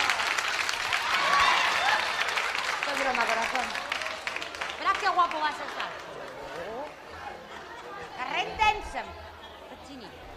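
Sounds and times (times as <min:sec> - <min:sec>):
crowd clapping: 0:00.0 - 0:07.2
speech: 0:05.3 - 0:06.0, 0:08.7 - 0:09.2, 0:09.9 - 0:10.3.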